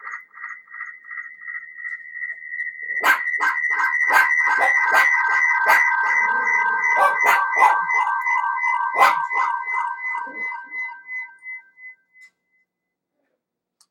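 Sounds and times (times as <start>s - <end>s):
test sound for FFT: 3.0s - 11.6s.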